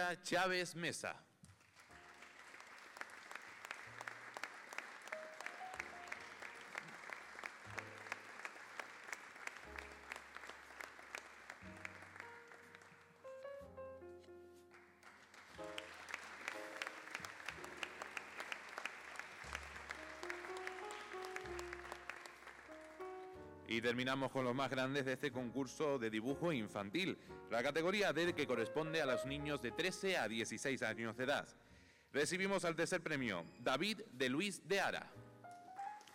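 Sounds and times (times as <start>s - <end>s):
speech: 0.0s - 1.3s, 23.8s - 35.2s
audience applause for prize winner: 1.6s - 13.2s, 14.8s - 23.1s.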